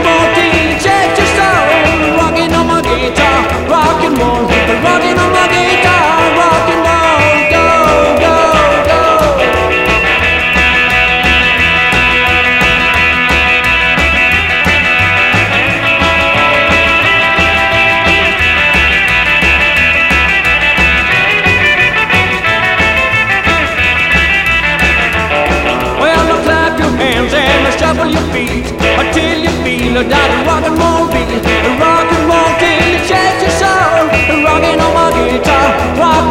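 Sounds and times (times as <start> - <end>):
rock and roll guitar: 0.0 - 36.2.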